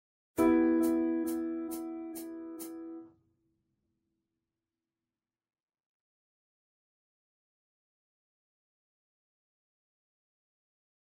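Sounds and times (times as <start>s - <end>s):
piano: 0.4s - 3.1s.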